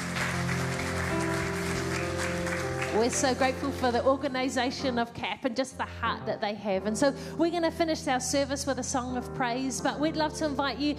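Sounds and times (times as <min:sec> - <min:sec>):
crowd applauding: 0:00.0 - 0:03.9
speech: 0:03.0 - 0:10.9.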